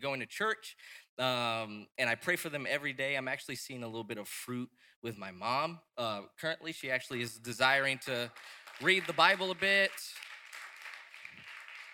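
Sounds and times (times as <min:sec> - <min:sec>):
speech: 0:00.0 - 0:10.2
audience applause: 0:08.3 - 0:11.9.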